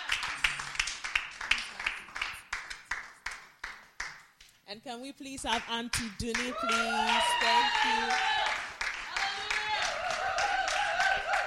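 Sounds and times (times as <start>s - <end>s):
audience applause: 0.0s - 3.8s, 6.4s - 11.4s
speech: 4.7s - 8.6s.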